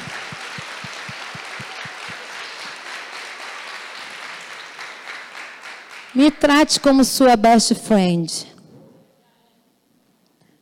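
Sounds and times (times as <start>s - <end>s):
audience applauding after a prayer: 0.0s - 7.0s
speech: 6.2s - 8.5s.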